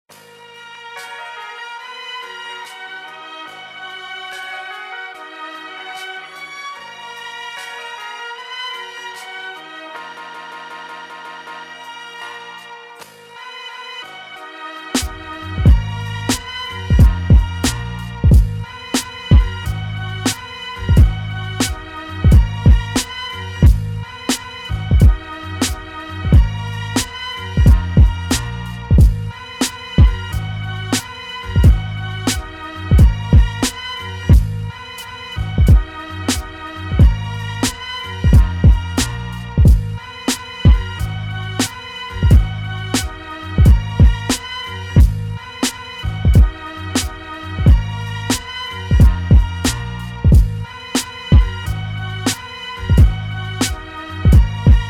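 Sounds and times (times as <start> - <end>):
music beat: 14.8 - 54.8.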